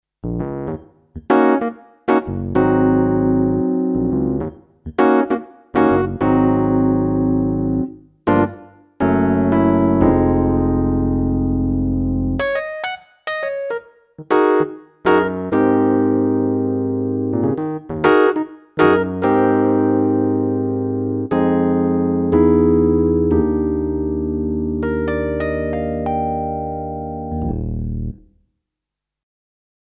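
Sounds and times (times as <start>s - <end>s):
Yamaha CLP575 stage electric piano playing: 0.3s - 28.2s.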